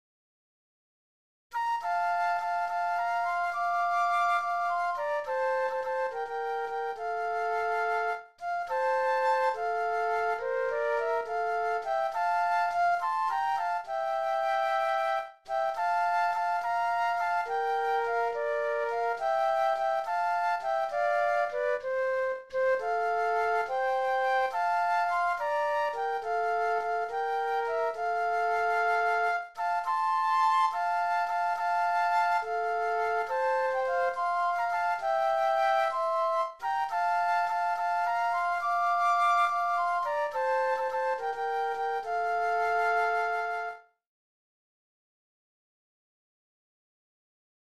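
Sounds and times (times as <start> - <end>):
flute duet: 1.5 - 44.0.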